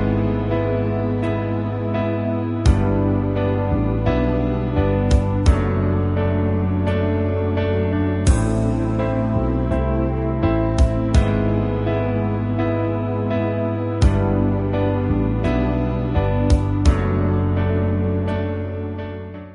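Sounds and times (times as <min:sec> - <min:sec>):
musical accompaniment: 0:00.0 - 0:19.5.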